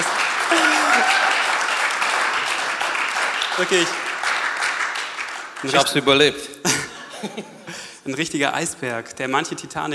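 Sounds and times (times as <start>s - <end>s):
applause: 0.0s - 6.2s
speech: 3.6s - 4.0s, 5.6s - 9.9s
laughter: 6.6s - 7.9s.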